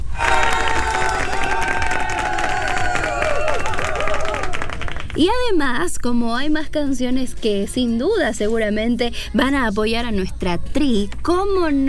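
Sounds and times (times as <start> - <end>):
crowd cheering and applauding: 0.0 - 5.2
speech: 5.2 - 11.8.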